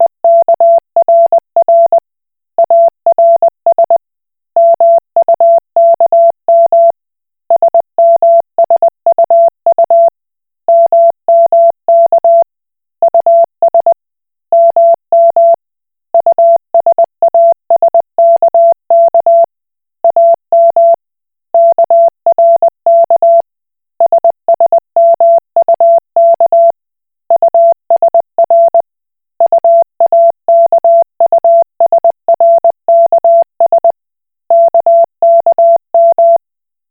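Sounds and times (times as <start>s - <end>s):
Koch Morse code beeps: 0.0s - 2.0s, 2.6s - 4.0s, 4.6s - 6.9s, 7.6s - 10.1s, 10.7s - 12.4s, 14.6s - 15.6s, 16.2s - 19.5s, 20.1s - 21.0s, 21.6s - 23.4s, 24.0s - 28.8s, 29.4s - 36.4s.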